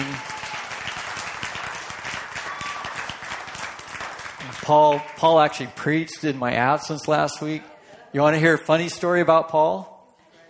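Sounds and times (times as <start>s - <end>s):
church congregation applause: 0.0s - 6.6s
speech: 4.7s - 9.9s.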